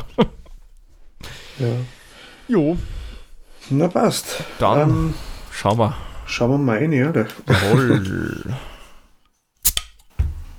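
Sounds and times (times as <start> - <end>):
speech: 0.2 - 0.4, 1.6 - 3.0, 3.7 - 8.7
laughter: 7.4 - 8.6
beer bottle cap clicks: 9.6 - 10.0.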